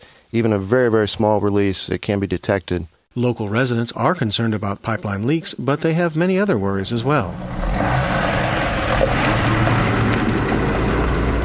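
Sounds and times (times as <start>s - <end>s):
speech: 0.3s - 7.8s
trucks on gravel roads: 7.0s - 11.4s.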